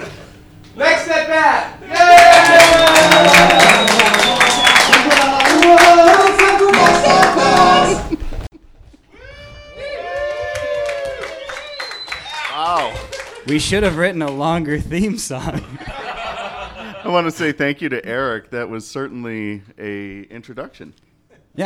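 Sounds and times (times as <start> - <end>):
speech: 0.8 - 2.0, 13.5 - 15.8, 17.1 - 21.0
audience applause: 2.0 - 8.1, 9.8 - 14.4
laughter: 15.3 - 17.4.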